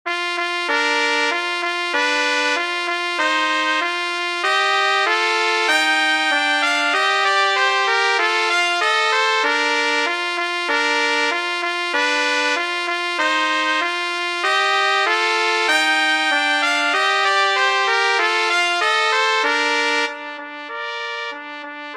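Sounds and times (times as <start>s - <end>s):
Scottish dance tune: 0.1s - 21.4s.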